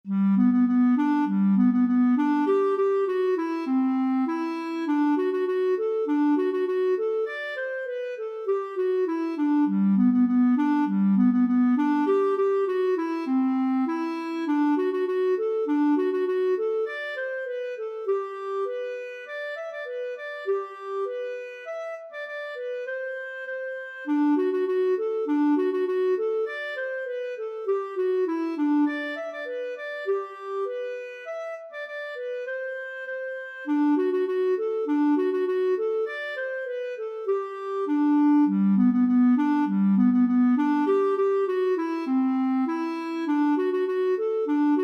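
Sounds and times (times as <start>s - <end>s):
polka music from Roros: 0.1s - 44.8s.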